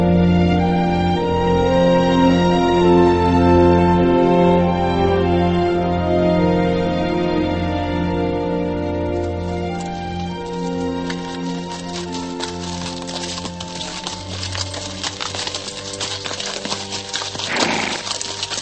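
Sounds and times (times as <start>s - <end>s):
horse hooves clip-clopping: 0.0s - 18.6s
horse-drawn carriage wheels rumbling: 9.0s - 18.6s.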